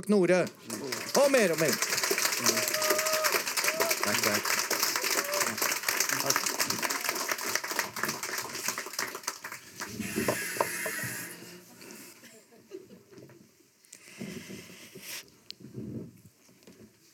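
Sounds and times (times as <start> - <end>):
speech: 0.0 - 2.6, 4.1 - 4.6, 6.2 - 6.8
audience applause: 0.5 - 11.4.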